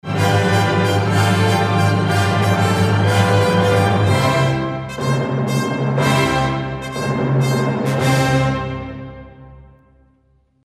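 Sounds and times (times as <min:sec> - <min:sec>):
drum roll: 0:00.4 - 0:08.5.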